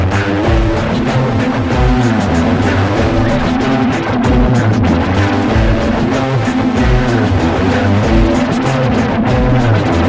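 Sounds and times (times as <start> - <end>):
electronic background music: 0.2 - 10.0.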